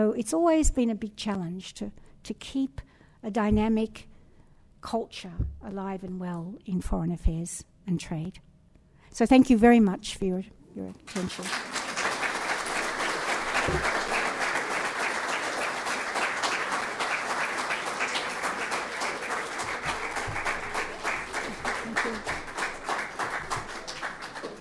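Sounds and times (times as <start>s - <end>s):
speech: 0.0s - 4.1s, 4.8s - 8.5s, 9.1s - 11.8s, 13.7s - 13.9s
audience applause: 11.1s - 24.5s.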